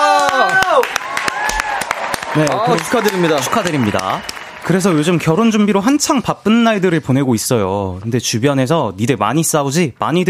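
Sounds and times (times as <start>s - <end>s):
voices cheering and whooping: 0.0s - 4.3s
hand claps: 0.0s - 5.3s
speech: 2.3s - 10.2s.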